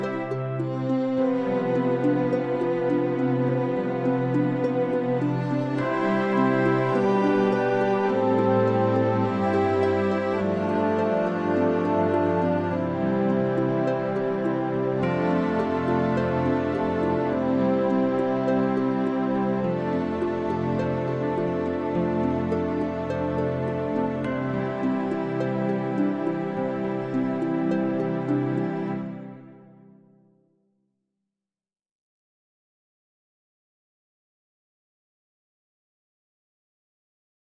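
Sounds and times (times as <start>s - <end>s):
musical accompaniment only: 0.0s - 29.9s.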